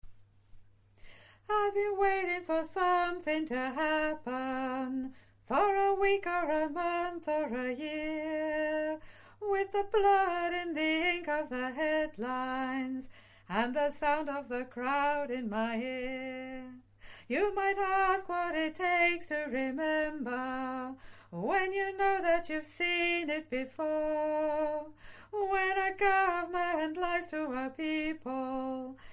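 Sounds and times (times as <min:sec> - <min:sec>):
solo soprano singing: 0:01.4 - 0:29.0.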